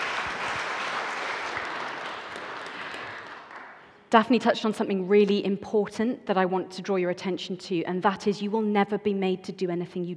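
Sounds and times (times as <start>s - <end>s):
audience applause: 0.0s - 3.9s
speech: 4.1s - 10.1s.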